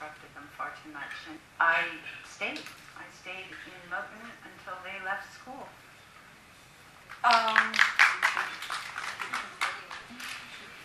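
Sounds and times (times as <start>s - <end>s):
audience applause: 7.2s - 10.2s.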